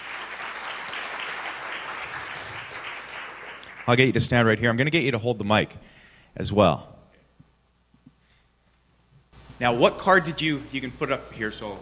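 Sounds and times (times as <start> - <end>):
audience applause: 0.0 - 4.1
speech: 3.9 - 7.0, 9.6 - 11.8.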